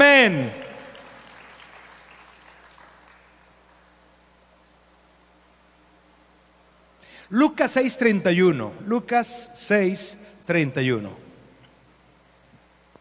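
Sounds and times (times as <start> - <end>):
speech: 0.2 - 0.6, 7.3 - 11.2
audience applause: 0.9 - 3.5.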